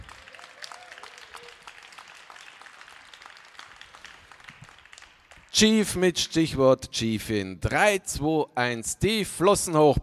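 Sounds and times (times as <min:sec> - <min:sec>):
audience applause: 0:00.0 - 0:05.5
speech: 0:05.6 - 0:10.0.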